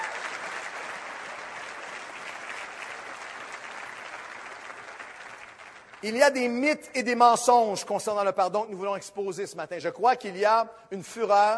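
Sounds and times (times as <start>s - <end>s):
audience applause: 0.0s - 6.0s
speech: 6.0s - 11.5s.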